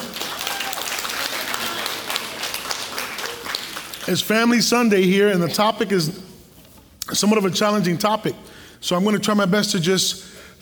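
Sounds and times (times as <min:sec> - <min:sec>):
audience clapping: 0:00.0 - 0:04.6
speech: 0:04.1 - 0:06.3, 0:07.1 - 0:10.3.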